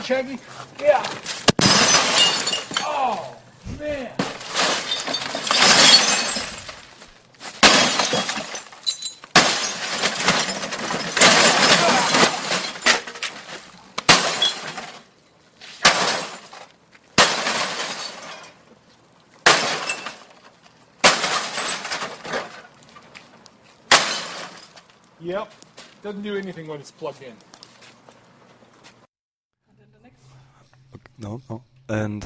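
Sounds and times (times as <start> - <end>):
speech: 0.0 - 1.5, 3.0 - 4.3, 25.4 - 27.5, 31.2 - 32.2
glass shattering as a plugged-in TV is smashed: 0.9 - 3.3, 4.2 - 13.5, 14.1 - 15.1, 15.8 - 18.6, 19.4 - 22.7, 23.9 - 24.8.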